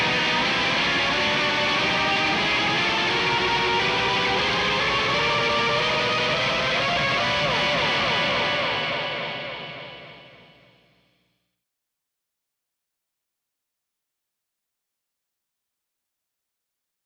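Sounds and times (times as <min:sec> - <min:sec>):
guitar: 0:00.0 - 0:11.2.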